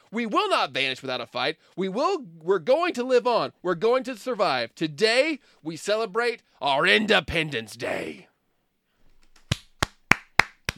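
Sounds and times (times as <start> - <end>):
speech: 0.1 - 8.3
hand clapping: 9.2 - 10.7.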